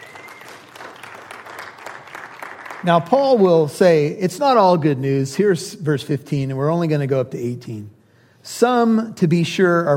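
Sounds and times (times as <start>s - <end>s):
audience clapping: 0.0s - 3.5s
speech: 2.8s - 9.9s.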